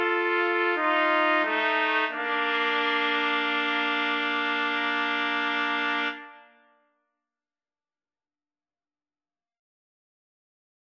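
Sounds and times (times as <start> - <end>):
trumpet duet playing a Pongau yodel: 0.0 - 6.6.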